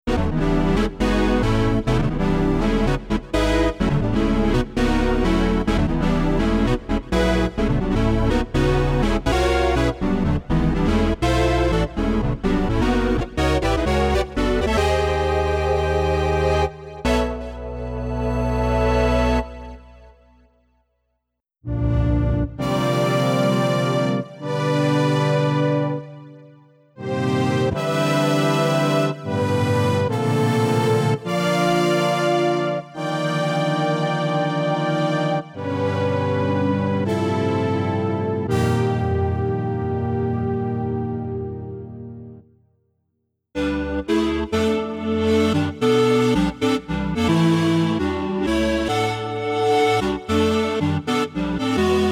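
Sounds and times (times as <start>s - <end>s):
synth: 0.1s - 20.3s, 21.6s - 42.5s, 43.6s - 52.0s.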